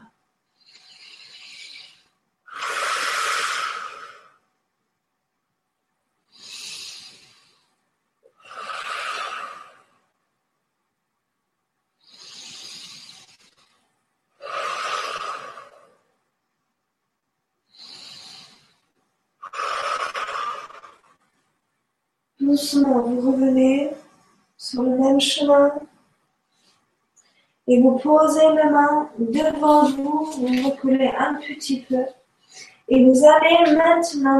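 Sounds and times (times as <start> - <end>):
slow breathing in and out during yoga meditation: 0.4 - 4.5, 6.2 - 10.2, 12.0 - 16.2, 17.6 - 21.6, 26.4 - 27.7, 32.3 - 32.9
speech: 22.5 - 24.0, 24.7 - 25.9, 27.7 - 34.3.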